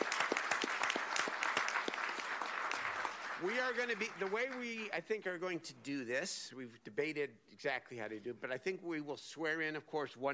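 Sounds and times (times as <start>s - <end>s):
audience applause: 0.0s - 5.0s
speech: 3.4s - 10.3s.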